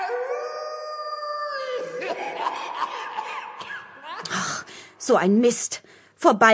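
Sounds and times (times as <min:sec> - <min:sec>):
wolf-like howling at the moon: 0:00.0 - 0:02.1
laughter: 0:01.6 - 0:04.3
speech: 0:05.1 - 0:06.5.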